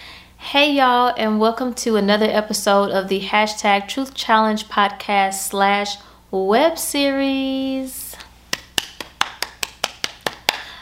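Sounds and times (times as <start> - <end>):
speech: 0.5 - 8.2
hands clapping: 8.5 - 10.8.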